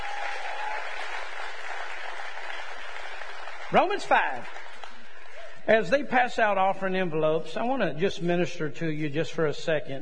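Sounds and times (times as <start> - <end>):
audience clapping hands: 0.0 - 5.6
speech: 3.7 - 4.6, 5.6 - 9.9.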